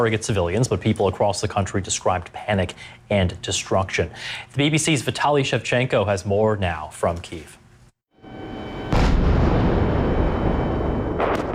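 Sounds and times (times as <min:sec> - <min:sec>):
speech: 0:00.0 - 0:07.6
missile strikes: 0:08.7 - 0:11.5
air defense fire: 0:08.9 - 0:11.5.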